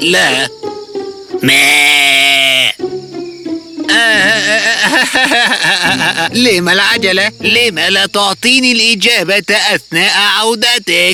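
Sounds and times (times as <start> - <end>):
speech: 0.0 - 0.7, 1.4 - 2.2, 4.8 - 11.1
goat bleating: 1.4 - 2.8, 3.9 - 4.8
laughter: 3.9 - 6.7.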